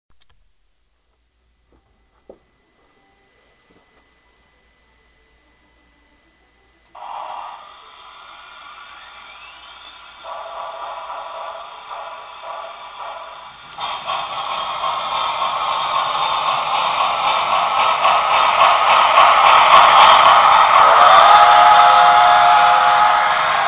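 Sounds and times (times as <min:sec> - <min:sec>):
steam engine: 0:02.3 - 0:23.6.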